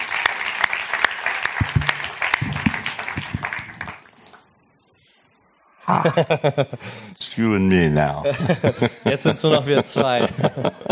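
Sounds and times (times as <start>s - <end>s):
audience applause: 0.0s - 4.5s
laughter: 5.8s - 7.0s, 8.2s - 10.8s
speech: 6.0s - 10.8s.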